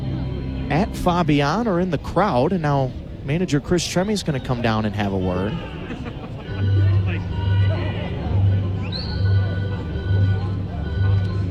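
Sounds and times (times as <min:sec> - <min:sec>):
speech: 0:00.7 - 0:05.8
laughter: 0:04.7 - 0:11.4
whistle blown repeatedly in the crowd: 0:08.8 - 0:11.4.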